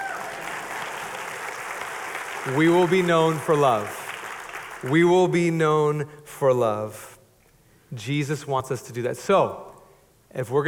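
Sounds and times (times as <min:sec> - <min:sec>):
audience applause: 0:00.0 - 0:04.9
speech: 0:02.4 - 0:04.0, 0:04.8 - 0:07.1, 0:07.9 - 0:09.7, 0:10.3 - 0:10.6.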